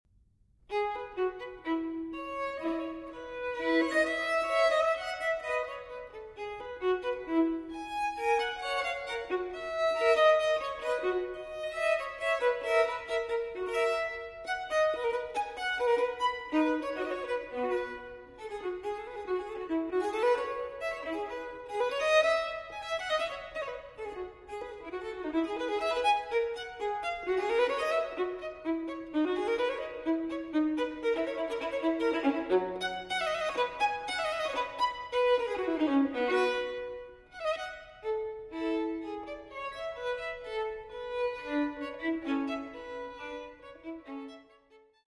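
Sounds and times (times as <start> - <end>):
solo violin playing a fantasia: 0.6 - 45.0.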